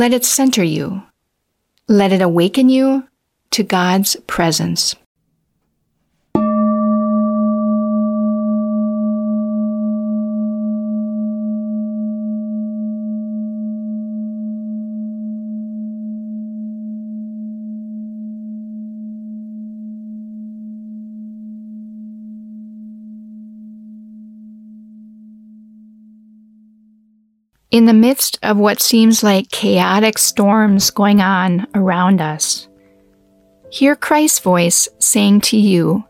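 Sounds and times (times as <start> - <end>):
speech: 0.0 - 1.1, 1.9 - 5.0, 27.7 - 32.7, 33.7 - 36.0
ringing meditation bowl: 6.4 - 27.2.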